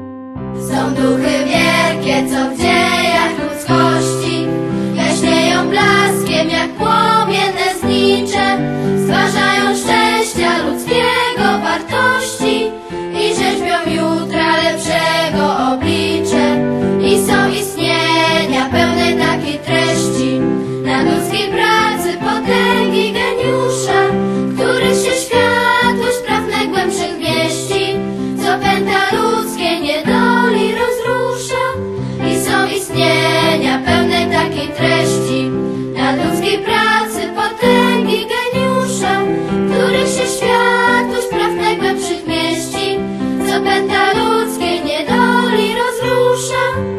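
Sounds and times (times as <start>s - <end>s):
hymn singing: 0.6s - 46.8s.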